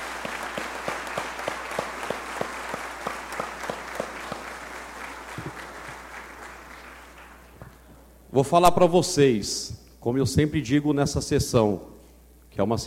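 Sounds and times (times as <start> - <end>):
audience applauding: 0.0 - 7.9
speech: 8.4 - 11.9, 12.6 - 12.8.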